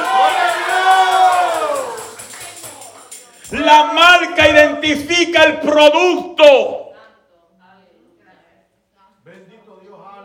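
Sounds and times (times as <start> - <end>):
audience shouting praise: 0.0 - 2.1
speech: 3.6 - 6.8.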